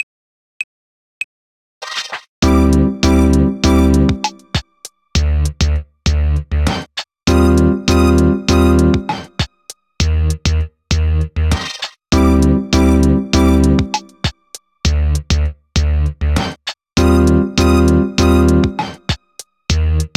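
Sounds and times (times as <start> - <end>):
techno music: 2.4 - 6.7, 7.3 - 11.2, 12.1 - 16.1, 17.0 - 20.1.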